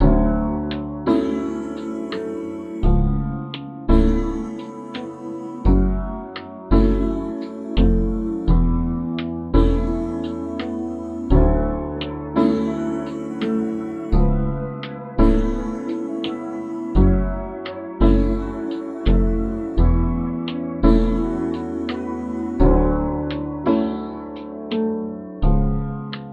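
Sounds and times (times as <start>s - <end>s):
gospel music in A major: 0.0s - 25.1s.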